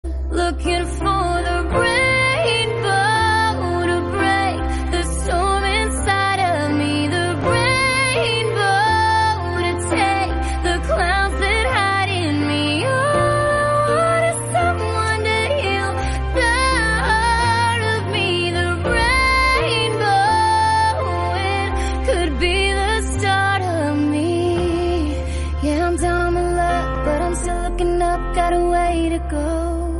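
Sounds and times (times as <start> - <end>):
English-language song: 0.0 - 29.9.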